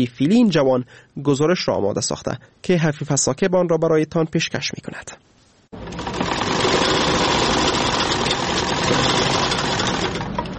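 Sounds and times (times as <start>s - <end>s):
speech: 0.0s - 6.1s, 8.9s - 9.3s
sewing machine running in tailoring shop: 5.8s - 10.5s.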